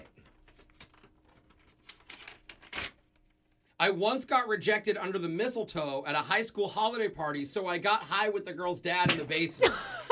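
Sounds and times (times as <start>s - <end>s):
paper envelope being torn open: 0.1s - 3.4s
speech: 3.8s - 10.0s.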